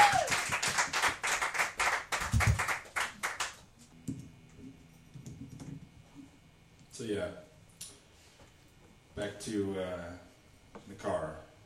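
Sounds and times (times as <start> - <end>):
small audience clapping: 0.0 - 3.7
speech: 7.1 - 7.5, 9.2 - 11.5.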